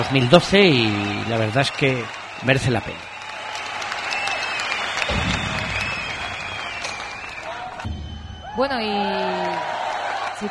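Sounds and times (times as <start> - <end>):
speech: 0.0 - 3.1, 8.6 - 9.8
audience applause: 0.0 - 10.4.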